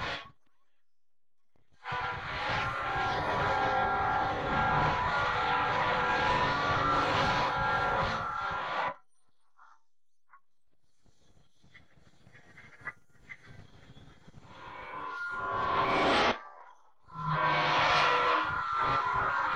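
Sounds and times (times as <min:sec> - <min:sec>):
guitar: 0:00.0 - 0:00.3, 0:01.8 - 0:08.9, 0:12.8 - 0:19.5.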